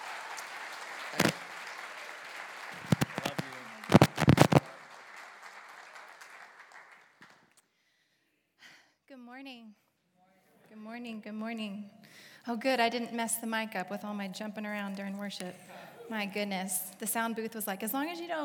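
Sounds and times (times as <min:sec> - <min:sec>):
church congregation applauding a speaker welcomed to the stage: 0:00.0 - 0:07.6
speech: 0:09.4 - 0:09.8, 0:10.8 - 0:18.4.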